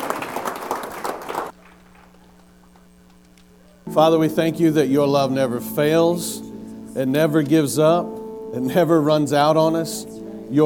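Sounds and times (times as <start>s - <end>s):
audience clapping hands in praise: 0.0s - 3.2s
speech: 3.9s - 10.6s.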